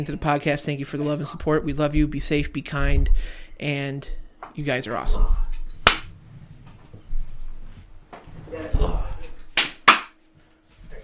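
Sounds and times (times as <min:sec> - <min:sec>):
speech: 0:00.0 - 0:05.5
hand claps picked up by mic: 0:05.8 - 0:06.1, 0:09.6 - 0:10.2.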